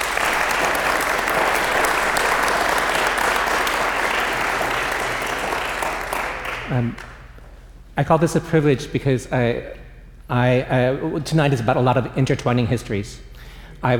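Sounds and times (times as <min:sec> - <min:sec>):
audience applause: 0:00.0 - 0:07.2
speech: 0:06.7 - 0:07.2, 0:08.0 - 0:13.9.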